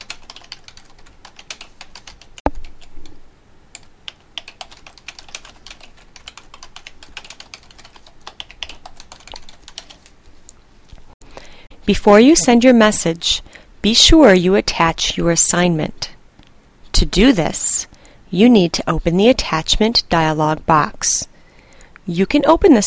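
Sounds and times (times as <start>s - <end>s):
fast typing on a computer keyboard entering a message into a text box: 0.0s - 10.1s
speech: 11.9s - 16.1s, 17.0s - 21.3s, 22.1s - 22.8s.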